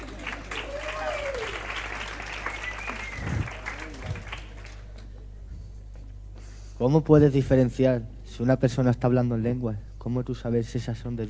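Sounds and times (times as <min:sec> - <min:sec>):
audience applause: 0:00.0 - 0:05.1
speech: 0:06.8 - 0:11.2.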